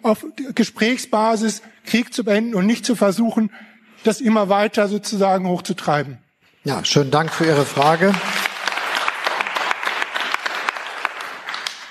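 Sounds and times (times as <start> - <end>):
speech: 0.0 - 8.4
audience applause: 7.1 - 11.8.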